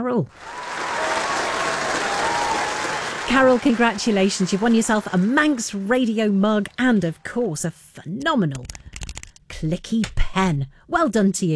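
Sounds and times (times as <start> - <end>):
speech: 0.0 - 0.6, 3.3 - 8.8, 9.5 - 11.5
group applauding a quiz winner: 0.3 - 7.5.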